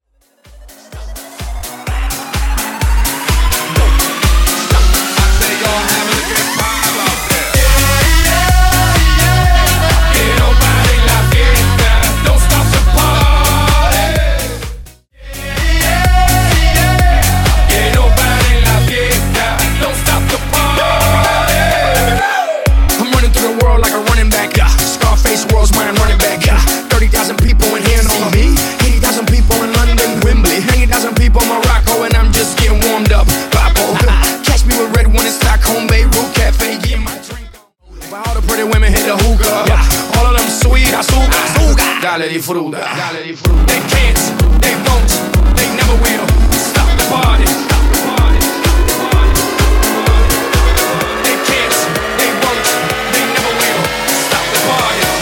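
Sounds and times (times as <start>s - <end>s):
dirty drum loop: 0.3s - 37.5s, 38.1s - 42.0s, 43.5s - 55.2s.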